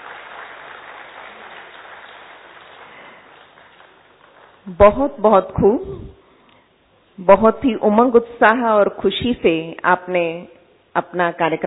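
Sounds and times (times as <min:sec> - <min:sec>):
crowd applause: 0:00.0 - 0:04.7
speech: 0:04.7 - 0:06.2, 0:07.2 - 0:11.6.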